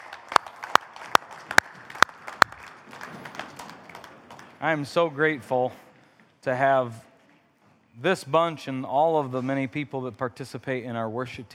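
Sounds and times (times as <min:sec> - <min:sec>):
audience applause: 0:00.0 - 0:04.8
sharp evenly spaced claps: 0:00.0 - 0:04.8
speech: 0:04.6 - 0:07.1, 0:08.0 - 0:11.5.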